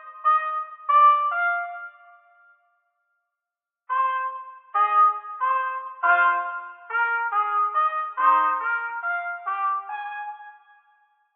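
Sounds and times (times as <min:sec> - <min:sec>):
trumpet playing in a cave: 0:00.0 - 0:02.0, 0:03.9 - 0:10.9.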